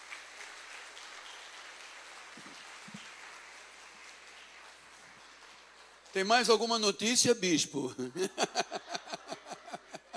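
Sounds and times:
audience applause: 0.0s - 6.5s
speech: 6.2s - 8.8s
laughter: 8.0s - 10.1s.

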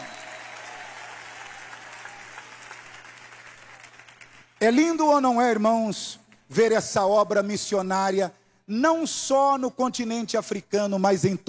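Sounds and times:
audience clapping: 0.0s - 4.8s
speech: 4.6s - 11.4s.

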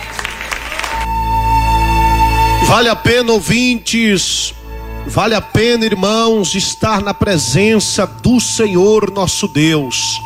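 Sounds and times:
people clapping in praise of Jesus at a religious gathering: 0.0s - 2.6s
sustained musical tone: 0.9s - 10.2s
speech: 2.7s - 10.2s.

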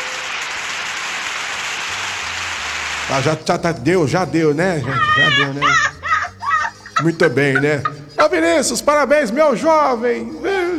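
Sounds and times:
applause: 0.0s - 3.4s
speech: 3.1s - 5.9s, 7.0s - 10.7s
laughter: 3.1s - 10.7s.

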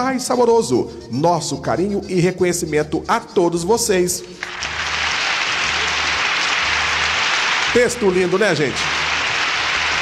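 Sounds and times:
speech: 0.0s - 5.0s, 7.7s - 9.0s
crowd applause: 4.4s - 10.0s.

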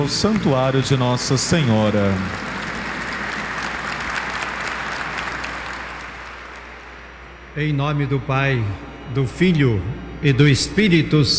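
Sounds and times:
speech: 0.0s - 2.5s, 7.6s - 11.3s
warm round of applause: 0.0s - 7.0s.

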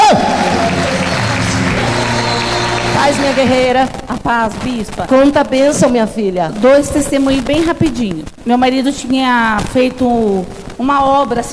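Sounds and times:
congregation applauding during a church service: 0.0s - 3.9s
speech: 3.2s - 11.5s.

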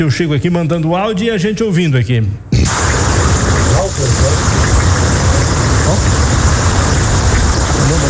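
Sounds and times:
speech: 0.0s - 2.8s
heavy rain: 2.6s - 8.0s.

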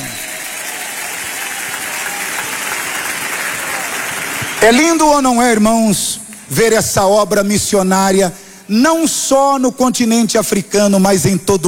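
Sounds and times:
audience applause: 0.0s - 5.6s
speech: 4.6s - 11.6s.

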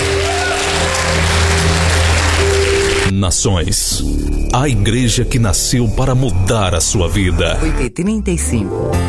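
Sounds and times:
audience applauding loudly: 0.0s - 3.1s
speech: 3.2s - 9.0s.

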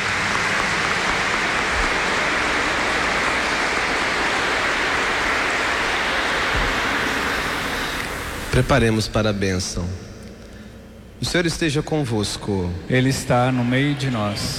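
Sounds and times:
audience applause: 0.0s - 8.7s, 12.9s - 14.5s
speech: 8.6s - 10.1s, 11.2s - 14.5s.

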